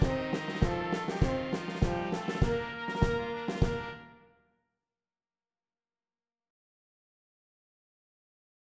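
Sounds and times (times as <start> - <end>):
percussion: 0.0 - 4.0.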